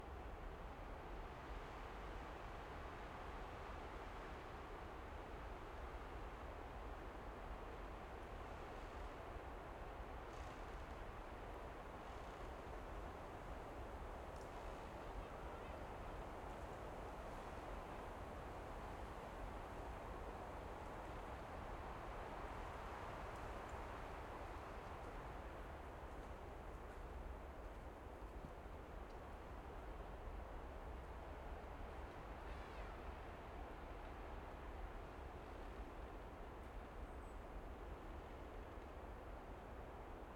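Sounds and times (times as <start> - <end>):
calm wind in pine tree forest in the Baltic: 0.0 - 40.3.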